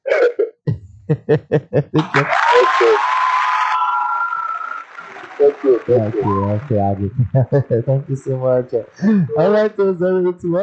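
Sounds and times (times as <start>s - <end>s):
laughter: 0.0s - 3.1s, 4.4s - 10.6s
speech: 1.1s - 3.2s, 5.4s - 10.6s
hands clapping: 1.1s - 9.8s
applause and crowd noise: 1.9s - 9.2s.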